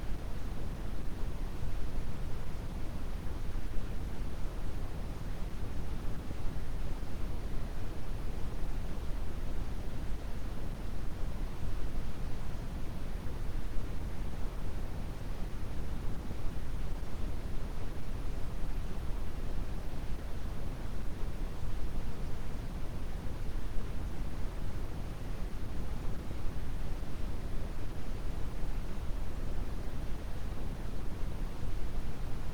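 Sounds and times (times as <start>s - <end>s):
quiet brown noise: 0.0s - 32.5s.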